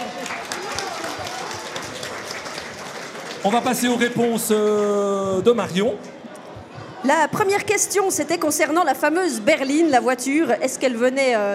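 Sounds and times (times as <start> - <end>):
audience applause: 0.0 - 5.0
speech: 3.4 - 6.1, 7.0 - 11.5.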